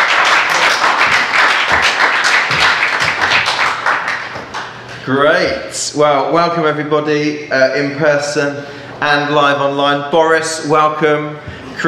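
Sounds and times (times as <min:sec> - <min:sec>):
audience round of applause: 0:00.0 - 0:04.8
speech: 0:05.1 - 0:11.8.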